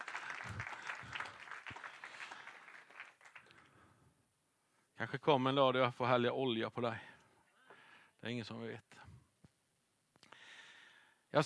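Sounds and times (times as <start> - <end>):
audience applause: 0.0 - 3.6
speech: 5.0 - 7.1, 8.2 - 8.9.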